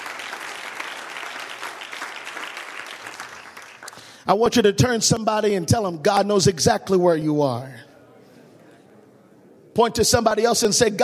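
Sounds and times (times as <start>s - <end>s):
audience clapping: 0.0s - 4.2s
speech: 4.2s - 7.9s, 9.8s - 11.0s.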